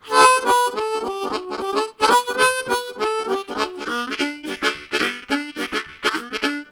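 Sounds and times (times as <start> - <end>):
octave boogie pattern on harmonica: 0.0 - 6.7.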